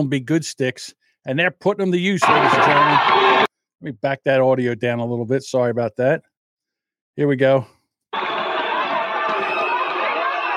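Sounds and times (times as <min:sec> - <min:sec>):
speech: 0:00.0 - 0:06.3, 0:07.2 - 0:08.3
crowd at street demonstration roaring and shouting: 0:02.2 - 0:03.5, 0:08.2 - 0:10.5.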